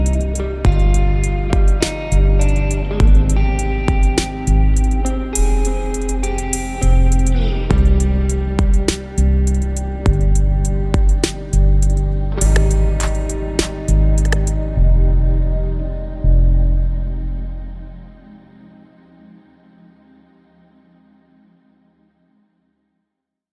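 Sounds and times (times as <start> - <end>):
drums: 0.0 - 14.6
guitar: 0.0 - 20.9.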